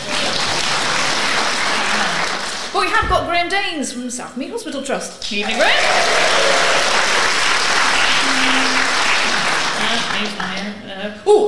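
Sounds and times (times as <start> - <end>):
audience applause: 0.0 - 2.8, 5.3 - 10.7
speech: 3.0 - 6.8, 11.2 - 11.4.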